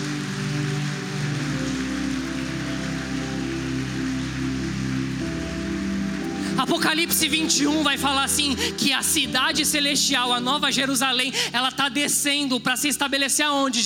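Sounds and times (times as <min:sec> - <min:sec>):
audience applauding: 0:00.0 - 0:09.8
sustained low keyboard chords: 0:00.0 - 0:12.4
speech: 0:06.6 - 0:13.8.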